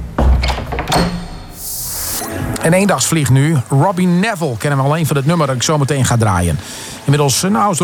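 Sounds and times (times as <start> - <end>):
door of record attic: 0.2 - 1.4
speech: 2.6 - 7.8.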